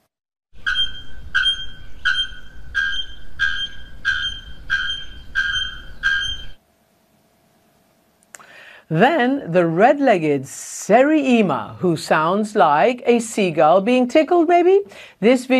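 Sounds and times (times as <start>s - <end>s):
bare-throated bellbird calling: 0.6s - 6.6s
speech: 8.9s - 15.5s.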